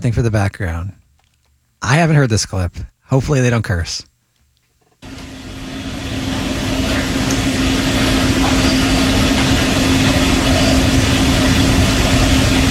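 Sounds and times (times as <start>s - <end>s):
speech: 0.0s - 1.0s, 1.8s - 4.1s
mechanical pump running: 5.0s - 12.6s.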